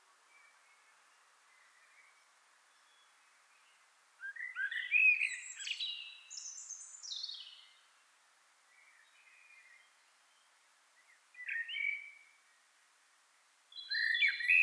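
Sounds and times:
common blackbird Turdus merula singing fluted warbles and squeaky notes: 4.2s - 7.7s, 11.4s - 12.1s, 13.8s - 14.6s.

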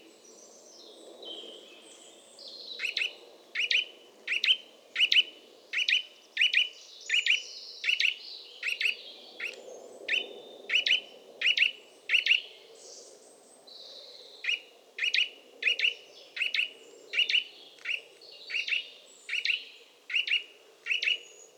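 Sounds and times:
Eurasian nuthatch Sitta europaea giving doubled high calls: 2.8s - 12.4s, 14.4s - 18.0s, 18.5s - 21.2s.

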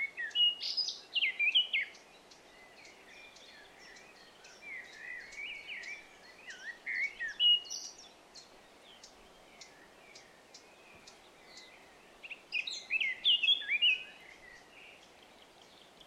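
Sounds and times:
Eurasian blackcap (Sylvia atricapilla) song of rapid varied warbling: 0.0s - 16.0s.

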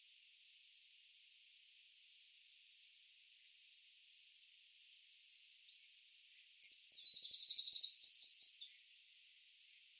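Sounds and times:
Eurasian wren song: 4.4s - 9.9s.

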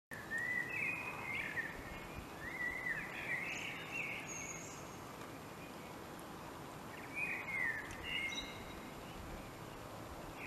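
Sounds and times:
common blackbird singing: 0.2s - 5.0s, 6.9s - 10.4s
soft hiss: 0.2s - 10.4s.

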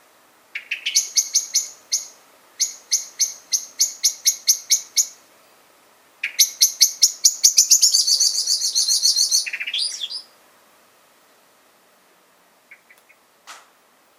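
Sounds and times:
common blackbird Turdus merula giving sharp metallic chink calls: 0.6s - 5.2s, 6.2s - 10.4s, 12.7s - 13.2s.

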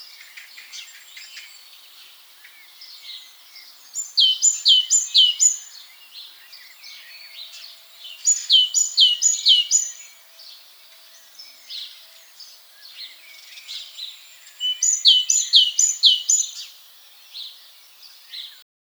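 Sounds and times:
great tit calls: 0.0s - 18.6s.

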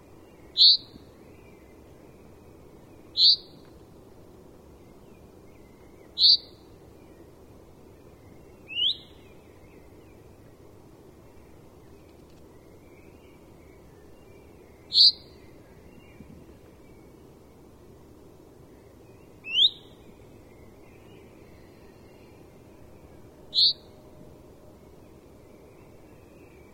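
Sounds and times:
faint steady hiss: 0.0s - 26.7s
common chaffinch calls: 0.1s - 1.1s, 3.0s - 3.7s, 6.0s - 6.6s, 8.5s - 9.9s, 14.5s - 16.0s, 19.4s - 20.0s, 23.5s - 24.0s
speech: 0.6s - 0.9s.

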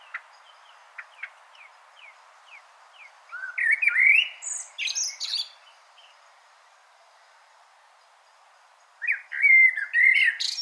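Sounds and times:
common blackbird Turdus merula warbling with scratchy twitters: 0.0s - 6.2s, 9.0s - 10.6s.

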